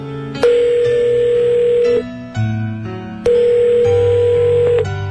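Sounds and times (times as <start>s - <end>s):
steady electronic telephone tone from a public phone booth: 0.4s - 2.1s, 3.2s - 5.0s.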